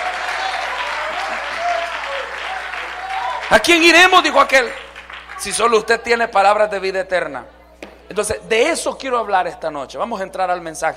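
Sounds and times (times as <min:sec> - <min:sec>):
faint cheering voices: 0:00.0 - 0:03.7
loud applause from a large crowd: 0:00.0 - 0:06.0
speech: 0:03.5 - 0:04.8, 0:05.4 - 0:10.9.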